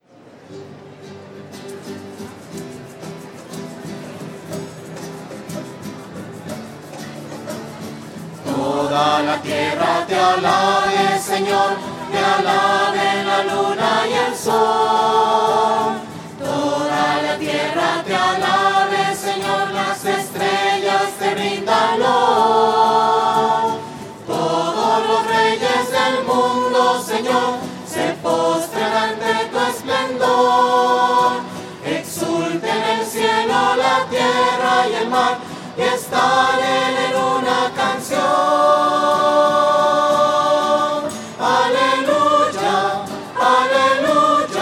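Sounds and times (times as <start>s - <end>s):
voices: 3.0s - 44.5s.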